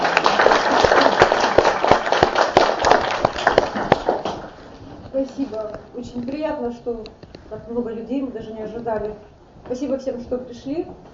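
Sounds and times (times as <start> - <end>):
crowd applauding: 0.0 - 4.6
speech: 5.3 - 11.1.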